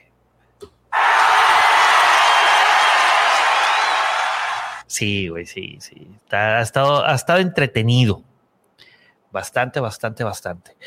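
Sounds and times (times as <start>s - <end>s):
canned applause sound effect: 1.0s - 4.8s
speech: 5.0s - 8.3s, 9.3s - 10.8s.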